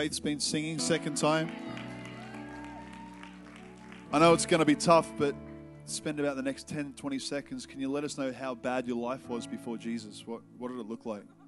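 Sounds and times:
speech: 0.0s - 1.8s, 4.1s - 11.4s
audience applause: 1.2s - 4.8s.

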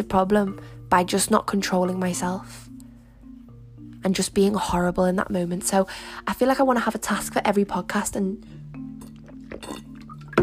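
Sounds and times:
speech: 0.0s - 2.7s, 4.0s - 8.9s
person drinking a sip of water: 8.8s - 10.4s.

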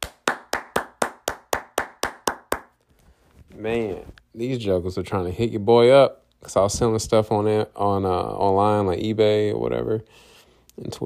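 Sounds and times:
hand clapping: 0.0s - 2.8s
speech: 3.6s - 11.0s.

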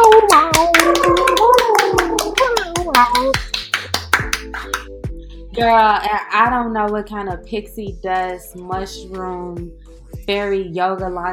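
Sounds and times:
hands clapping: 0.0s - 4.9s
speech: 5.6s - 11.3s.

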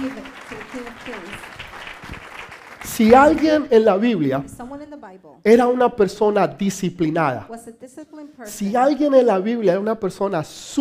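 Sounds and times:
speech: 0.0s - 1.6s, 2.8s - 10.7s
audience applause: 0.0s - 3.7s.

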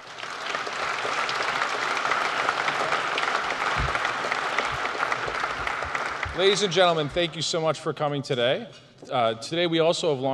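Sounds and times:
audience applause: 0.0s - 7.5s
speech: 6.4s - 10.3s.

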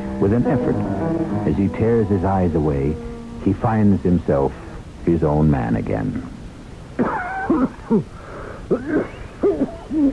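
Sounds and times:
speech: 0.2s - 6.4s, 7.0s - 10.1s
harsh wheezing cough: 7.0s - 8.1s, 8.7s - 10.0s.

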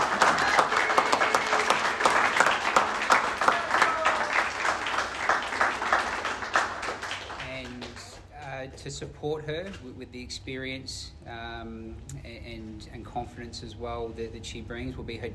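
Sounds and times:
audience applause: 0.0s - 8.0s
speech: 9.0s - 15.3s.

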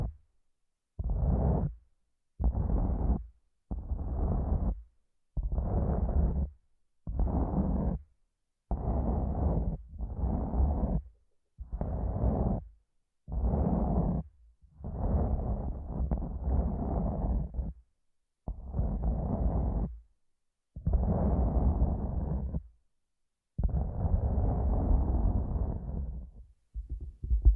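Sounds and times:
muffled rubbing and massaging strokes picked up by headphones used as a microphone: 1.1s - 1.8s, 2.4s - 4.9s, 5.5s - 8.1s, 8.7s - 11.1s, 11.7s - 12.7s, 13.3s - 17.8s, 18.6s - 20.0s, 20.8s - 22.7s, 23.6s - 27.5s.

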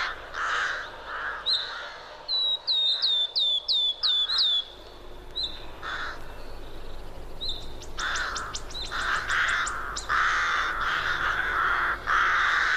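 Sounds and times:
harsh raspy forest bird calls: 0.0s - 4.8s, 5.4s - 6.6s, 7.4s - 12.7s
forest bird singing bright sweeping notes: 1.4s - 11.3s
dense rapid forest bird chirps: 2.3s - 10.3s.

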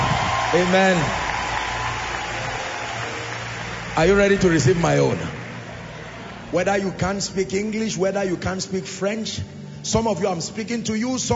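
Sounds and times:
audience hand clapping: 0.0s - 7.3s
speech: 0.5s - 1.2s, 4.0s - 5.4s, 6.5s - 11.3s.

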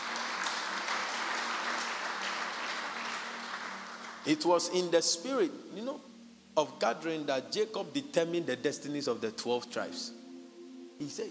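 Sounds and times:
audience clapping: 0.0s - 4.4s
speech: 4.2s - 10.2s, 11.0s - 11.2s.

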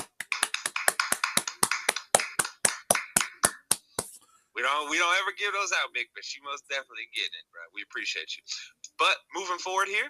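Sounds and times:
round of applause: 0.0s - 3.8s
speech: 4.7s - 10.0s.

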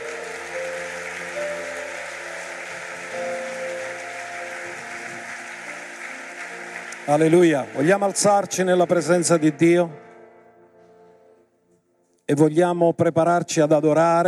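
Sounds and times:
applause: 0.0s - 10.2s
speech: 7.1s - 10.0s, 12.3s - 14.2s.

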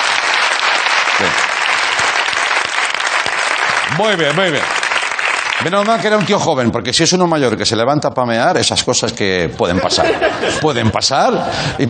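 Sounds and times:
audience applause: 0.0s - 6.6s
speech: 1.2s - 1.4s, 4.0s - 4.8s, 5.6s - 11.8s
laughter: 9.6s - 11.8s.

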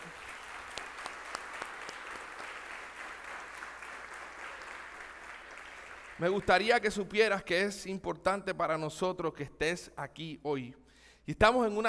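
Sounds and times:
crowd clapping: 0.0s - 7.2s
speech: 6.2s - 11.8s.

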